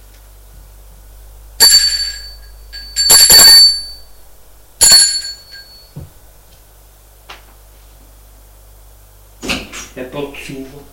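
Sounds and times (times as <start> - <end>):
apartment doorbell ringing: 1.6 - 4.1, 4.8 - 6.0
speech: 10.0 - 10.9.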